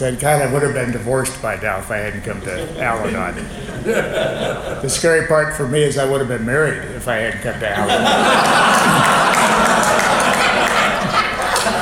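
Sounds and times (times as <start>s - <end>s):
speech: 0.0s - 8.8s
laughter: 2.4s - 5.2s, 7.7s - 11.7s
audience clapping: 8.3s - 11.7s.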